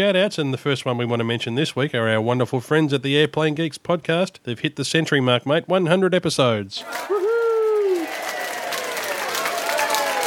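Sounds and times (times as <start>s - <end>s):
speech: 0.0s - 7.3s
applause and cheering: 6.8s - 10.2s.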